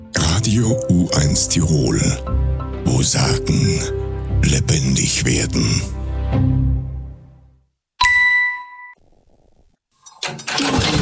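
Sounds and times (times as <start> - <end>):
speech: 0.4 - 6.6
heavy tractor engine starting: 10.0 - 11.0.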